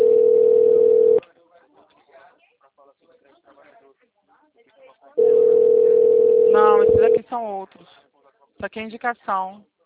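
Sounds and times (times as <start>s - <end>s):
telephone dial tone: 0.0s - 1.2s, 5.2s - 7.2s
speech: 7.3s - 9.7s.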